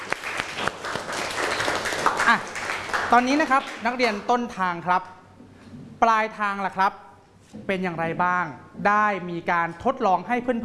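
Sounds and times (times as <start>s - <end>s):
classroom applause: 0.0s - 4.2s
speech: 2.3s - 5.2s, 6.0s - 10.6s.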